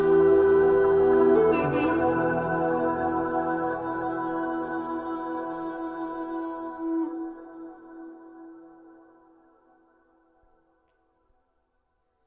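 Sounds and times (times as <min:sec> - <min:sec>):
low whistle: 0:00.0 - 0:09.1.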